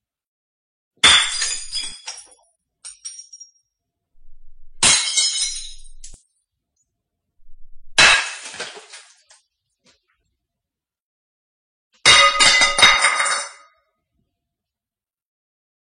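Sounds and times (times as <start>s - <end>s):
plates falling to the floor: 1.1s - 2.3s, 8.0s - 9.2s, 12.1s - 13.6s.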